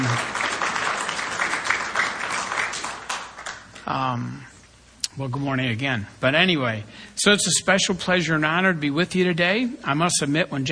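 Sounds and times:
crowd applauding: 0.0 - 3.8
speech: 3.9 - 4.5, 5.2 - 10.6.

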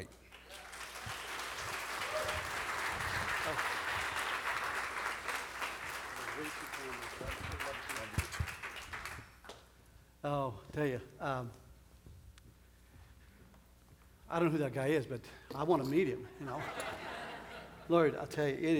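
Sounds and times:
audience applause welcoming a speaker onto a stage: 0.0 - 9.2
speech: 10.3 - 11.6, 14.3 - 17.0, 17.9 - 18.7
laughter: 16.4 - 18.2.

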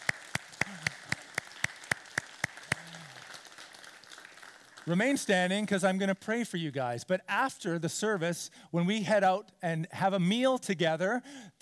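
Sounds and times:
audience applause: 0.0 - 5.0
speech: 4.9 - 11.6.

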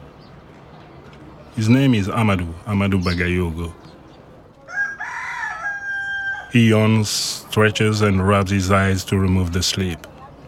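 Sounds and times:
speech: 1.6 - 3.9, 6.5 - 10.1
rooster crowing: 4.6 - 6.6.

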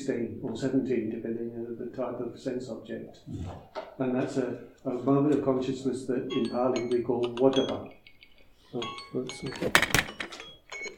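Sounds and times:
speech: 0.0 - 8.0, 8.7 - 10.0
phone alarm going off: 8.8 - 10.9.

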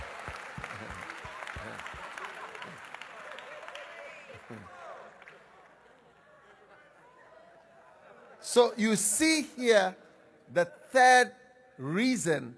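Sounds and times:
audience clapping: 0.0 - 5.9
speech: 8.5 - 12.5.

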